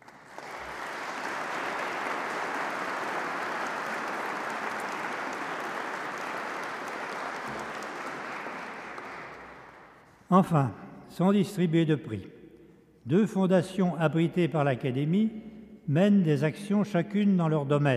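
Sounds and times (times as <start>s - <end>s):
audience applauding prize winners: 0.0s - 10.0s
speech: 10.3s - 12.4s, 13.0s - 17.9s.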